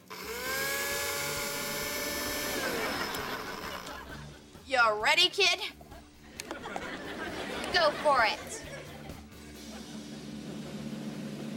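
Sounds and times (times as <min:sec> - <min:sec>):
blender running on frappe setting: 0:00.0 - 0:04.0, 0:09.8 - 0:11.5
laughter: 0:02.4 - 0:04.6, 0:05.8 - 0:10.7
speech: 0:04.8 - 0:05.8, 0:07.8 - 0:08.5.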